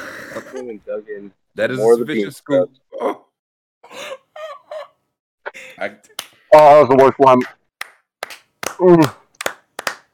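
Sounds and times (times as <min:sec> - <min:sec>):
speech: 0:00.4 - 0:03.3, 0:05.8 - 0:07.6, 0:08.8 - 0:09.2
round of applause: 0:07.8 - 0:10.1.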